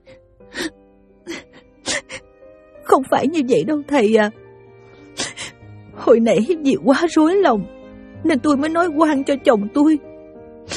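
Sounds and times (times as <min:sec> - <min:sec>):
woman sobbing in a Vietnamese radio drama: 0:00.6 - 0:02.3, 0:05.2 - 0:05.6
speech: 0:03.0 - 0:04.4, 0:06.1 - 0:10.1.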